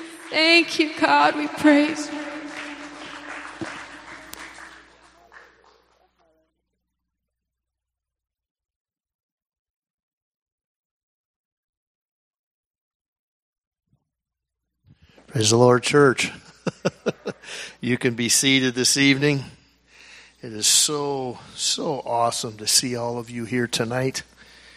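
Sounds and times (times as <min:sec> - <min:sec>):
audience clapping hands in praise: 0:00.0 - 0:06.4
speech: 0:00.3 - 0:02.3, 0:15.4 - 0:19.6, 0:20.4 - 0:24.3
laughter: 0:16.3 - 0:17.9.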